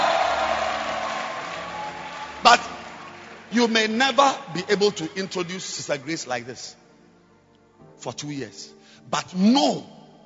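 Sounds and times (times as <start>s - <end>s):
audience shouting: 0.0s - 2.6s
speech: 3.5s - 6.8s, 8.0s - 10.0s.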